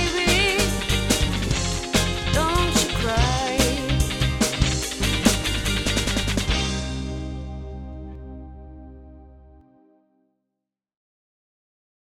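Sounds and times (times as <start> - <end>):
classic rock ensemble playing: 0.0 - 8.9.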